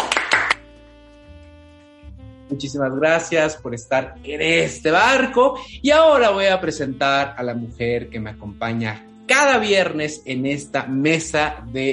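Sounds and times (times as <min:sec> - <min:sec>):
sharp bright handclaps: 0:00.0 - 0:00.6
speech: 0:02.5 - 0:11.9.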